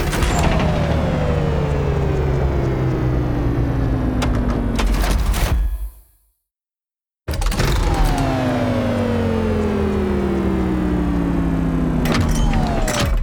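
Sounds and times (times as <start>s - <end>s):
switch turning on and off: 0.1s - 5.1s, 7.8s - 13.1s.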